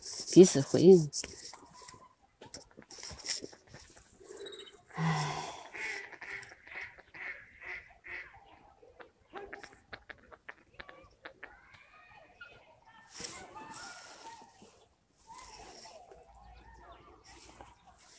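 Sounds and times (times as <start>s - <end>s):
speech: 0.4s - 1.4s
mallard duck quacking: 5.7s - 8.3s.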